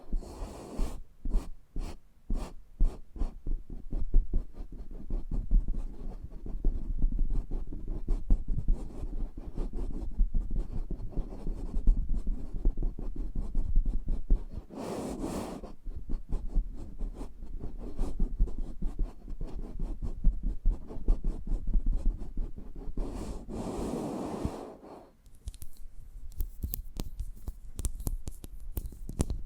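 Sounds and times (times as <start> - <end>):
ASMR eardrum massage rubbing and scratching: 0.0 - 29.4
clicks and taps: 25.2 - 29.4.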